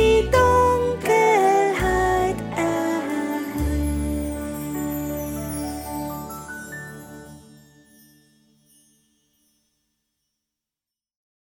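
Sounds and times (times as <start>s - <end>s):
soprano voice: 0.0s - 6.2s.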